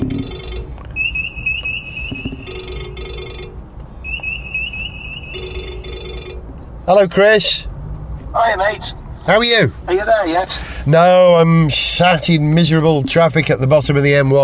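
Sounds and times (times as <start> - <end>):
telephone ringing in car: 1.9 - 3.6, 5.2 - 6.5
speech: 6.9 - 7.7, 8.4 - 14.4.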